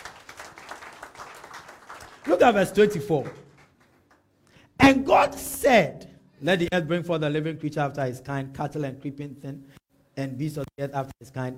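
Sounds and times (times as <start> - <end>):
audience clapping: 0.0 - 4.5
speech: 2.2 - 3.4, 4.9 - 11.5.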